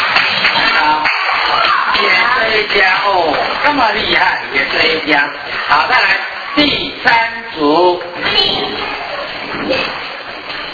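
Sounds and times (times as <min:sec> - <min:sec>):
class of pupils clapping hands during an English lesson: 0:00.0 - 0:03.8
speech: 0:02.7 - 0:08.9.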